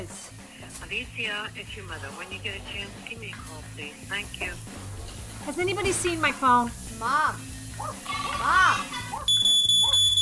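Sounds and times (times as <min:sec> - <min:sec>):
speech: 0:00.9 - 0:09.0
smoke alarm beeping: 0:09.3 - 0:10.1.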